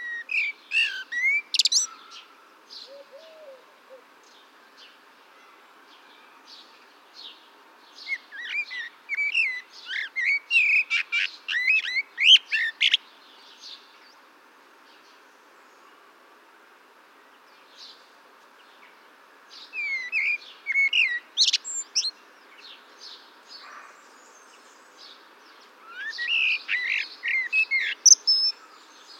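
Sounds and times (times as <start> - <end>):
Eurasian blackbird whistled song: 0.0 - 2.0, 8.0 - 13.0, 19.7 - 22.1, 25.8 - 28.6.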